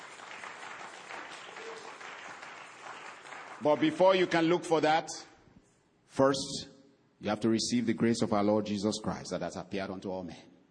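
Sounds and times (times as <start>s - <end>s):
crowd clapping: 0.0s - 4.5s
speech: 3.6s - 5.3s, 6.2s - 10.5s.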